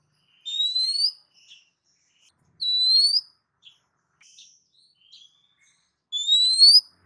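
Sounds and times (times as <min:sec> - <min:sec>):
female oriental magpie-robin calling to a male: 0:00.3 - 0:01.2, 0:02.6 - 0:03.3, 0:06.1 - 0:06.9.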